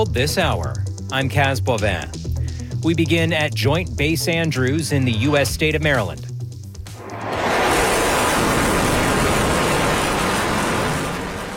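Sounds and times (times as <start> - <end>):
speech: 0.0 - 6.3
fighter jet flyover: 6.9 - 11.5.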